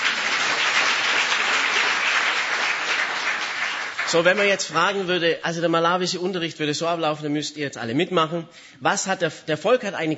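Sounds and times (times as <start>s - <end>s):
audience applause: 0.0s - 5.0s
speech: 4.1s - 10.1s.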